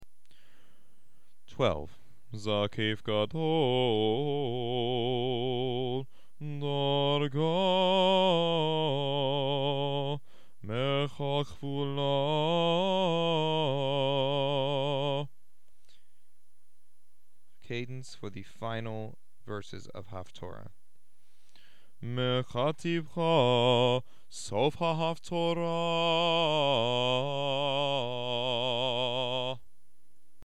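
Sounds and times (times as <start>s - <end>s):
Haftarah trope cantillation in F: 1.5s - 15.4s, 22.0s - 29.7s.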